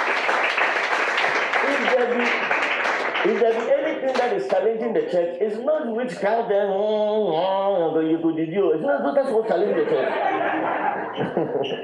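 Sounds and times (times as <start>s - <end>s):
audience clapping: 0.0s - 4.7s
speech: 1.9s - 2.6s, 3.2s - 11.8s
laughter: 9.1s - 11.8s.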